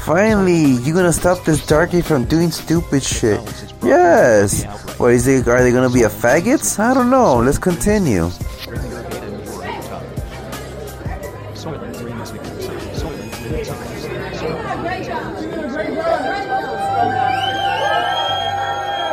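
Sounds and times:
speech: 0:00.0 - 0:08.9
crowd cheering: 0:15.0 - 0:19.1
crowd applauding: 0:15.8 - 0:19.1.

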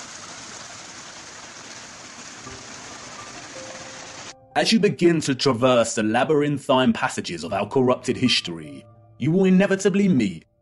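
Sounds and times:
flowing streams and rivers: 0:00.0 - 0:04.4
speech: 0:04.6 - 0:10.5.

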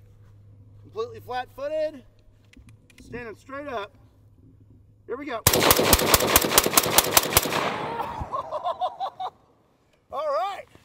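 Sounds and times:
speech: 0:00.9 - 0:02.1, 0:03.0 - 0:04.0, 0:05.1 - 0:08.2
277 Fury rifle shots fired: 0:05.5 - 0:08.4
laughter: 0:07.8 - 0:09.4.

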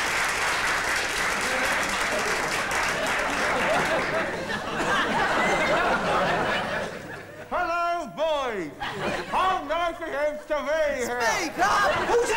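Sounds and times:
applause: 0:00.0 - 0:04.5
laughter: 0:01.4 - 0:12.3.

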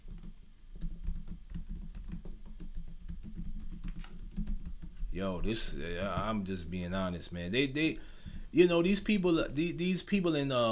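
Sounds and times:
fingers typing on a computer keyboard: 0:00.0 - 0:05.0
speech: 0:05.2 - 0:10.7.

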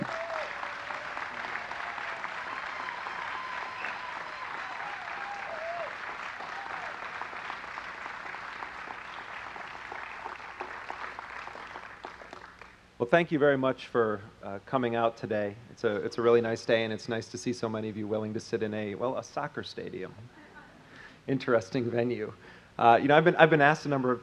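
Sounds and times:
audience applause: 0:00.0 - 0:12.8
speech: 0:13.0 - 0:20.4, 0:21.3 - 0:24.2.

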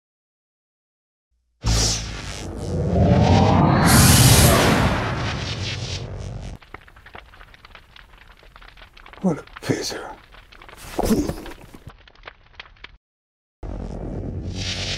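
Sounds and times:
starship warp drive engaging: 0:01.6 - 0:06.1
faint crackling tail: 0:05.3 - 0:12.9
speech: 0:09.2 - 0:10.1.

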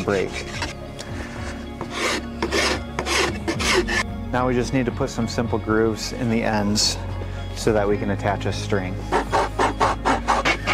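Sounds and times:
speech: 0:00.0 - 0:00.6, 0:04.3 - 0:09.2
wooden bow being sanded by hand: 0:01.8 - 0:04.0, 0:09.1 - 0:10.7.

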